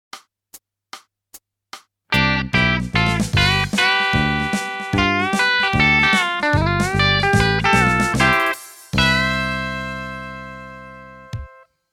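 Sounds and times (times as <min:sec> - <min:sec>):
country music: 0:02.1 - 0:11.6.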